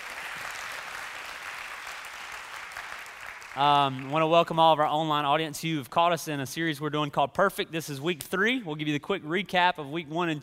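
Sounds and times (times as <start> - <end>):
congregation applause welcoming guests at a church service: 0.0 - 4.2
speech: 3.6 - 10.4.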